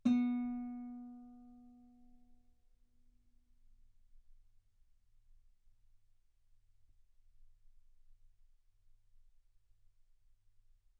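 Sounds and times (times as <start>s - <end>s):
guitar B3 note on B string played fortissimo: 0.0s - 1.4s.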